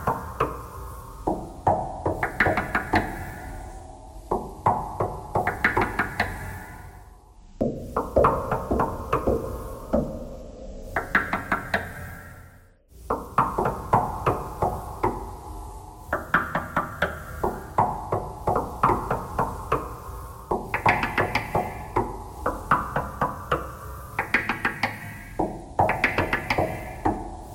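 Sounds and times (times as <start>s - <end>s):
knocking thread noise: 0.0s - 3.4s, 4.3s - 6.6s, 7.6s - 10.2s, 13.1s - 15.4s, 16.1s - 27.5s.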